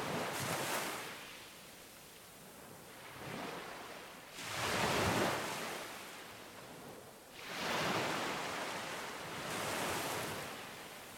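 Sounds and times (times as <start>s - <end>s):
water at a beach: 0.0s - 11.1s.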